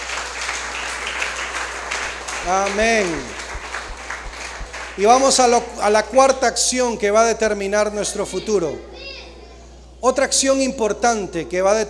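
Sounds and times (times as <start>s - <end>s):
church congregation clapping for Jesus during a sermon: 0.0s - 5.9s
low hum: 1.3s - 6.2s
speech: 2.4s - 3.4s, 5.0s - 9.0s, 10.0s - 11.8s.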